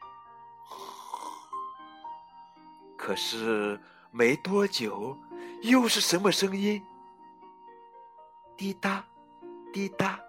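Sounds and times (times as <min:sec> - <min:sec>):
snoring: 0:00.7 - 0:01.6
speech: 0:03.1 - 0:06.9, 0:08.6 - 0:09.1, 0:09.7 - 0:10.2.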